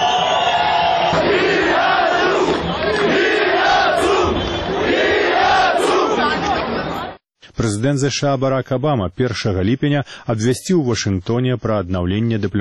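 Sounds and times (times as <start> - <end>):
large protest crowd chanting in unison: 1.0 - 7.2
speech: 7.6 - 12.5.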